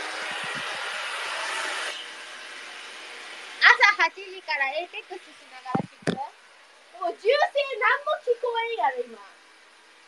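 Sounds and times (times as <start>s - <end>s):
hair dryer blowing: 0.0s - 3.6s
speech: 4.0s - 5.9s, 7.0s - 9.4s.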